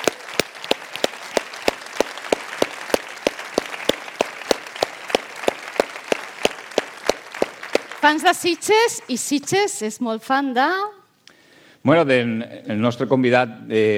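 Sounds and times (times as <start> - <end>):
audience applause: 0.0 - 8.0
speech: 8.0 - 11.0, 11.8 - 13.9.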